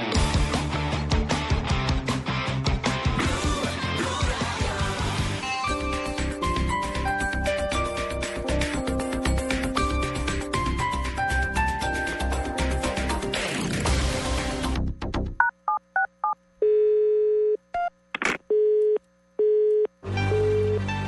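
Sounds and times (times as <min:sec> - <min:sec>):
music: 0:00.0 - 0:15.4, 0:20.0 - 0:21.0
telephone busy tone: 0:15.4 - 0:17.9, 0:18.5 - 0:20.8.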